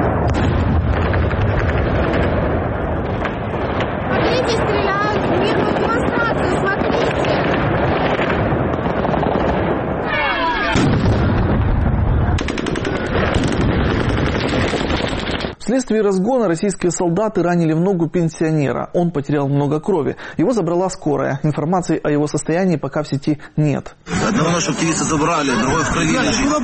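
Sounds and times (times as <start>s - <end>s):
gunfire at protesters: 0.0s - 15.6s
speech: 15.8s - 26.6s
laughter: 24.1s - 26.6s.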